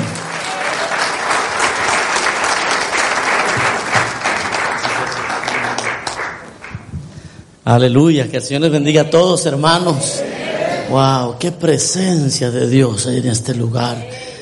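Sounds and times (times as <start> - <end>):
loud applause from audience: 0.0 - 6.9
speech: 7.7 - 10.3, 10.9 - 14.3.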